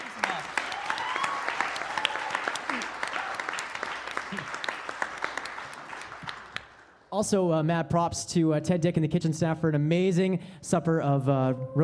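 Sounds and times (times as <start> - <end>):
cheers and voices: 0.0 - 3.4
audience applause: 0.0 - 7.0
speech: 7.2 - 11.8.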